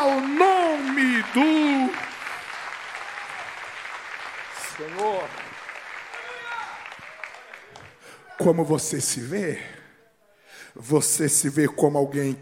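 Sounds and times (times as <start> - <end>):
audience applause: 0.0 - 8.5
speech: 8.4 - 9.8, 10.8 - 12.3.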